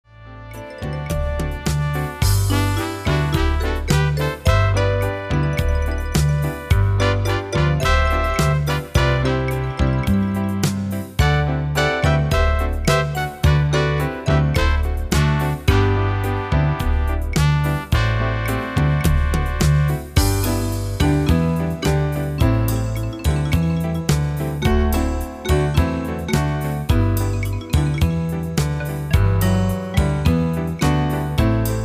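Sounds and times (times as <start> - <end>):
rumba music: 0.2 - 31.8.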